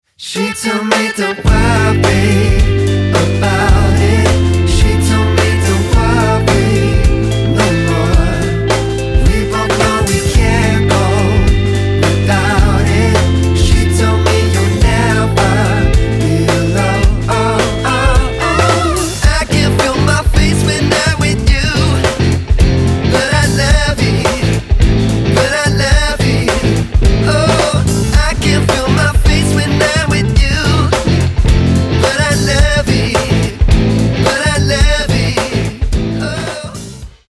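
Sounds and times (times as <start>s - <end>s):
rock pop band: 0.2s - 37.2s.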